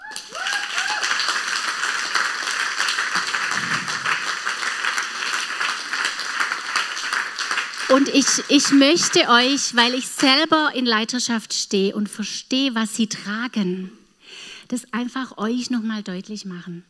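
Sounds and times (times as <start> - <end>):
audience applause: 0.0 - 10.0
speech: 7.9 - 14.0, 14.7 - 16.8.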